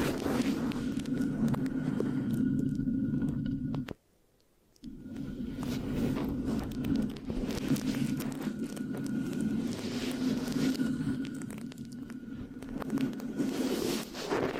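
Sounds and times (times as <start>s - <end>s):
scratching and sticky rubbing on a microphone: 0.0s - 3.9s, 5.1s - 14.5s.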